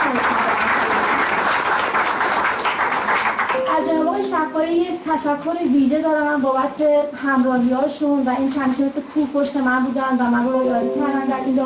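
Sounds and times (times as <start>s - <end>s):
audience applause at an association election speech: 0.0s - 3.7s
speech: 4.7s - 11.6s.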